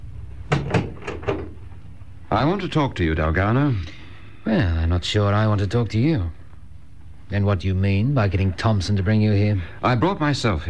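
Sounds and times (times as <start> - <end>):
door being closed: 0.5 - 1.6
speech: 2.3 - 6.4, 7.3 - 10.6.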